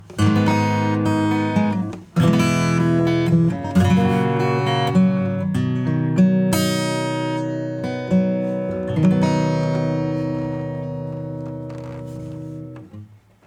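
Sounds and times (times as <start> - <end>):
acoustic music: 0.0 - 13.4.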